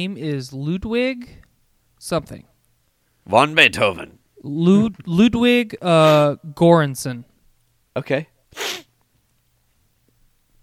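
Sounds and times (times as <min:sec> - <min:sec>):
speech: 0:00.0 - 0:01.4, 0:02.0 - 0:02.5, 0:03.2 - 0:07.3, 0:08.0 - 0:08.7
sniffle or sneeze: 0:08.5 - 0:08.9.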